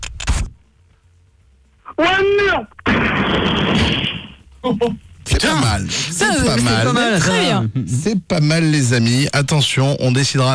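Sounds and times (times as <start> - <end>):
speech: 2.0 - 10.5
sharp bang: 2.8 - 4.4
sound-effect explosion: 2.8 - 4.4.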